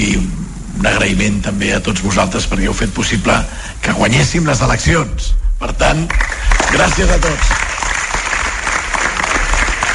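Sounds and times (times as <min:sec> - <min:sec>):
speech: 0:00.8 - 0:07.6
applause from a crowd: 0:06.1 - 0:09.9.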